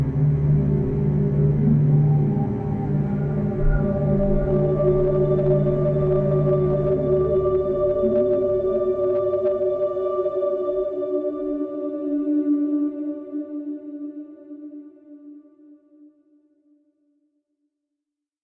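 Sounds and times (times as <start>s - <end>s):
light submerged drone: 0.0s - 13.0s.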